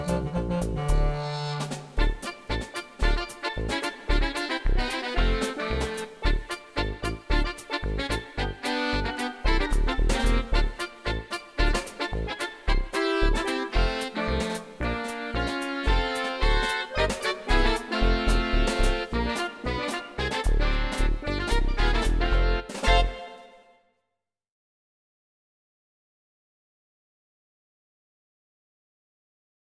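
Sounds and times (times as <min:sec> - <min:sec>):
band playing: 0:00.0 - 0:23.6.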